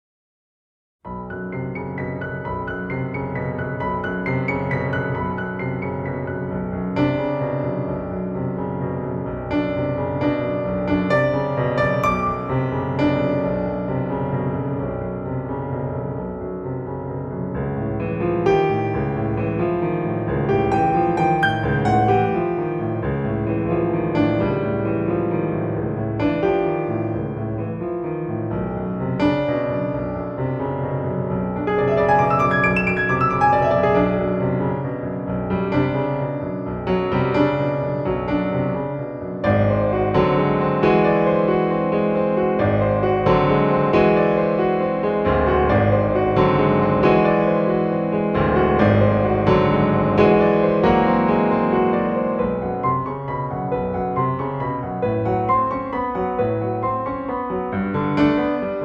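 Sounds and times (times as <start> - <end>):
solo piano: 1.0 - 58.8.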